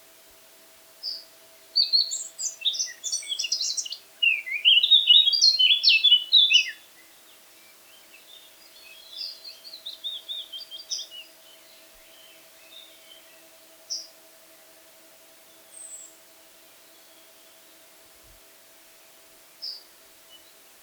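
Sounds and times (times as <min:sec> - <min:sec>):
Eurasian blackcap song: 0:01.8 - 0:14.1, 0:15.5 - 0:16.2, 0:19.6 - 0:20.6.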